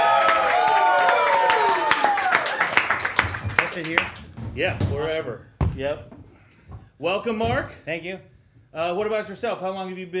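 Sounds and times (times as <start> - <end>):
audience applause for a guest at a Miami improv gathering: 0.0 - 4.3
speech: 3.8 - 6.2, 7.0 - 10.1.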